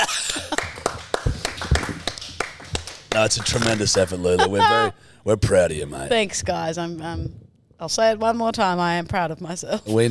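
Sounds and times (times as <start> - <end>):
people clapping: 0.0 - 4.8
speech: 3.2 - 10.0.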